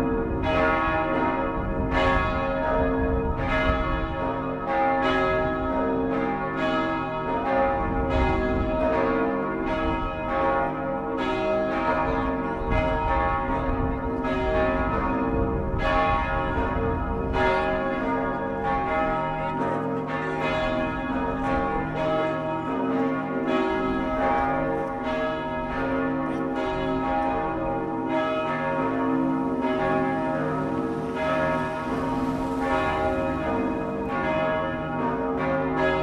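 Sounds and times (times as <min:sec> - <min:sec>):
church bells ringing: 0:00.0 - 0:36.0.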